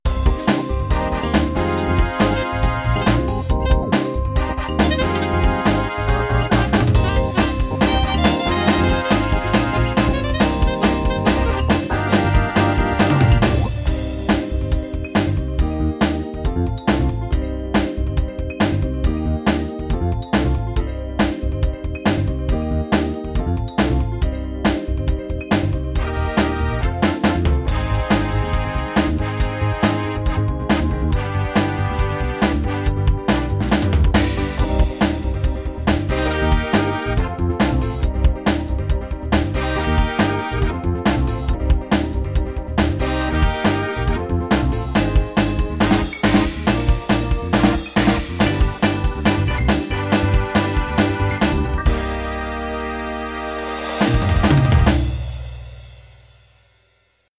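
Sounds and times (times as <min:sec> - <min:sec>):
1970s chart soul rhythms: 0:00.1 - 0:55.8.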